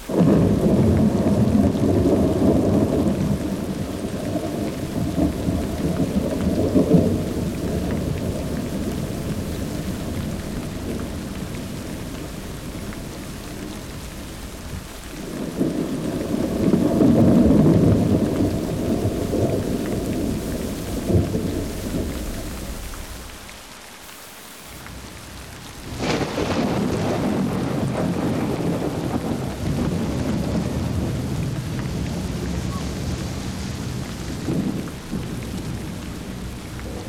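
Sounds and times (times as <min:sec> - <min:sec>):
thunder: 0:00.0 - 0:23.4, 0:24.9 - 0:37.0
rain in a thunderstorm: 0:00.0 - 0:37.0.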